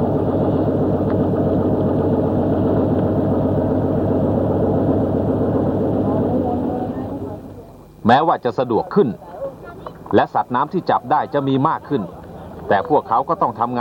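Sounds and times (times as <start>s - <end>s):
small fishing boat 30 horsepower outboard engine running: 0.0s - 13.7s
speech: 8.1s - 9.3s, 10.1s - 13.7s.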